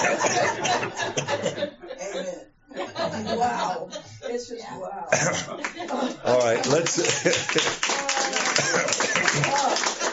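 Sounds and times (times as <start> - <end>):
laughter: 0.0 - 4.3, 5.2 - 10.1
speech: 0.2 - 1.7, 3.8 - 9.4
audience clapping: 5.6 - 10.1.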